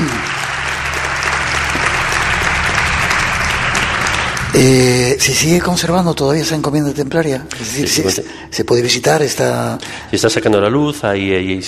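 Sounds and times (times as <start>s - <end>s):
audience applause: 0.0s - 6.8s
speech: 4.5s - 11.6s.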